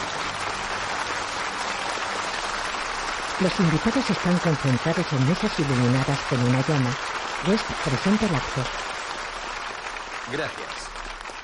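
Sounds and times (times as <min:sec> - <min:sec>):
enthusiastic crowd applauding at an outdoor night event: 0:00.0 - 0:11.4
speech: 0:03.4 - 0:08.9, 0:10.3 - 0:10.9.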